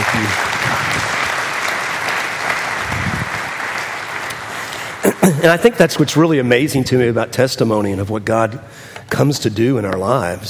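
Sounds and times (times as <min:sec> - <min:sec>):
audience applause: 0:00.0 - 0:05.6
speech: 0:05.3 - 0:10.4.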